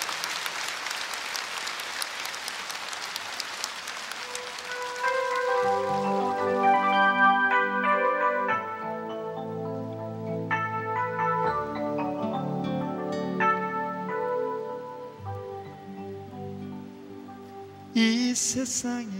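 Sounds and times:
concert audience applause at a Korean televised concert show: 0.0s - 7.3s
band playing: 4.1s - 19.0s.

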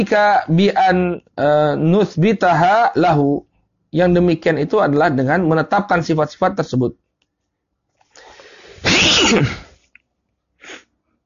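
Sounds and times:
speech: 0.0s - 7.0s, 9.3s - 9.6s
sneeze: 8.8s - 9.8s.

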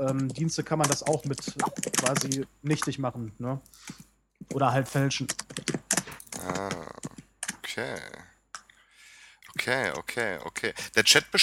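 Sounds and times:
typing on a computer keyboard: 0.0s - 3.0s, 3.9s - 8.7s
speech: 0.0s - 5.6s, 7.8s - 8.3s, 9.6s - 11.4s.

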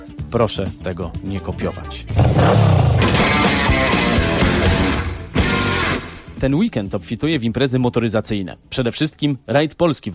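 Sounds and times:
speech: 0.3s - 2.8s, 6.4s - 10.1s
Harley-Davidson motorcycle doing a burnout: 2.1s - 5.0s.

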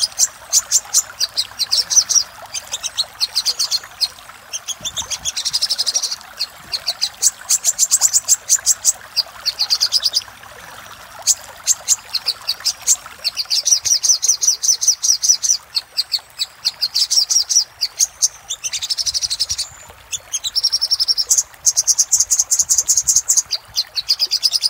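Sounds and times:
Little spiderhunter song of sharp high chips and trills: 0.0s - 10.3s, 11.2s - 24.6s.

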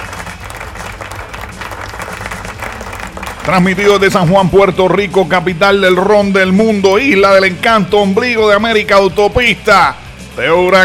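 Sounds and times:
crowd applauding: 0.0s - 4.7s
low rumble: 2.6s - 8.0s
speech: 3.4s - 10.8s.

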